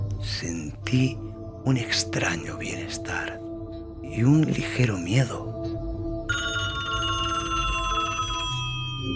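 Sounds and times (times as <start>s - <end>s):
speech: 0.2s - 3.4s, 4.1s - 5.6s
telephone ringing: 6.3s - 9.1s.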